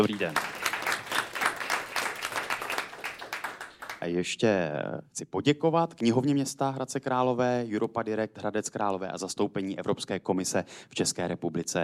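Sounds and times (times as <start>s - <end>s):
speech: 0.0s - 0.5s, 4.0s - 11.8s
audience applause: 0.0s - 4.1s.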